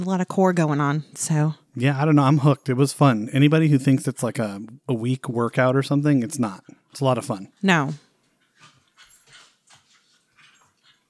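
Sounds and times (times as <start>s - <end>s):
speech: 0.0s - 8.0s
dogs fighting, yelping and whimpering: 8.2s - 11.0s.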